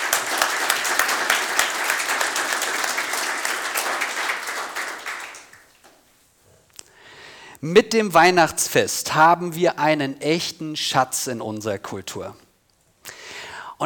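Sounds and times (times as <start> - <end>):
applause in a church service: 0.0 - 5.8
speech: 7.6 - 12.4.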